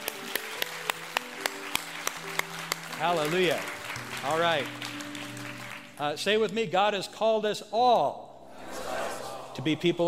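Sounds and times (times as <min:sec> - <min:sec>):
audience clapping hands in praise: 0:00.0 - 0:06.6
speech: 0:03.0 - 0:04.9, 0:06.0 - 0:08.2, 0:09.6 - 0:10.0.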